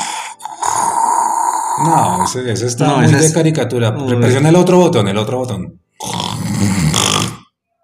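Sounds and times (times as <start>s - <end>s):
loud rough snore with gurgling choking rasp: 0.3s - 2.4s, 6.0s - 7.5s
speech: 1.8s - 5.8s.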